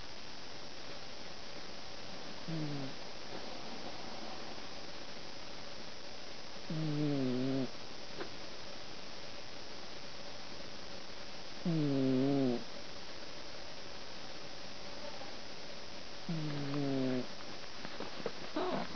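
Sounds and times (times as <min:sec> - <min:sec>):
cat snoring: 0:02.4 - 0:03.0, 0:06.7 - 0:07.7, 0:11.6 - 0:12.7, 0:16.3 - 0:17.3, 0:18.6 - 0:18.9.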